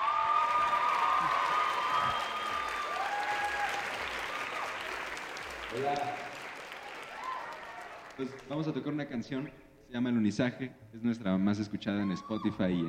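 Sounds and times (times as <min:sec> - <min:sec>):
audience applause: 0:00.0 - 0:08.6
speech: 0:05.7 - 0:06.3, 0:08.2 - 0:12.8.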